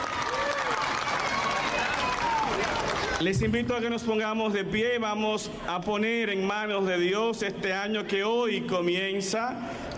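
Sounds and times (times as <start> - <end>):
crowd applause: 0.0 - 3.4
speech: 3.2 - 9.9.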